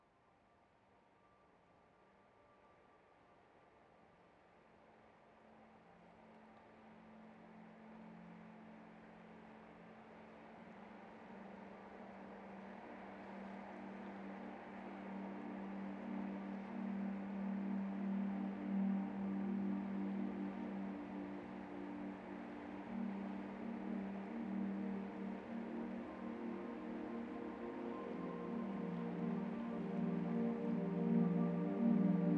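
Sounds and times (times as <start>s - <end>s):
spa classical lullaby music: 10.8s - 32.3s.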